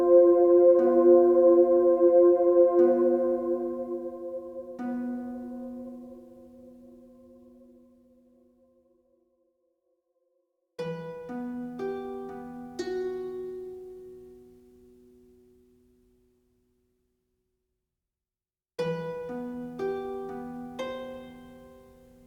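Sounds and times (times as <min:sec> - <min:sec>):
harp: 0:00.0 - 0:07.6, 0:10.8 - 0:14.6, 0:18.8 - 0:22.2.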